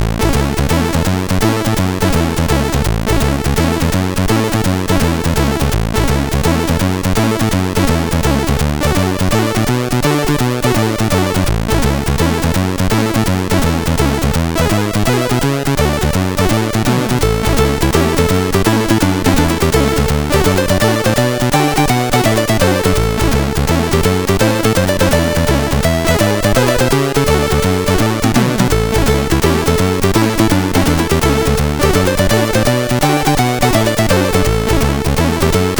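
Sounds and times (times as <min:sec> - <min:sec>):
rock and roll chiptune on CSG8580R5 sound chip: 0:00.0 - 0:35.7.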